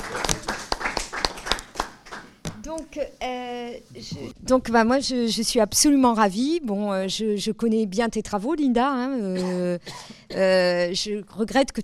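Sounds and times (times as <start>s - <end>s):
people clapping: 0.0s - 2.8s
speech: 2.7s - 11.8s.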